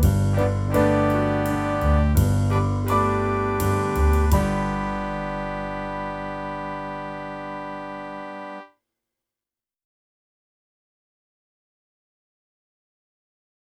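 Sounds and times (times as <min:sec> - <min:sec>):
clarinet: 0:00.0 - 0:08.7.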